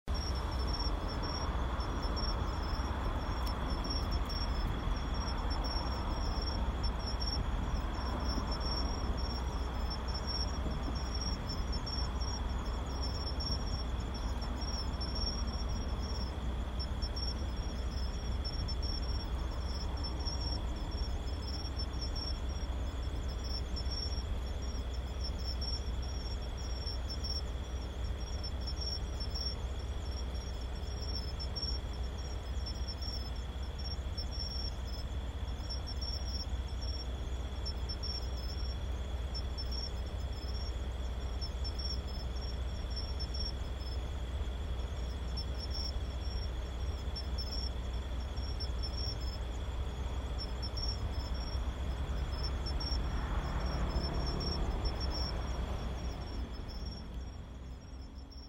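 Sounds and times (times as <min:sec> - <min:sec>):
crickets chirping: 0:00.0 - 0:58.4.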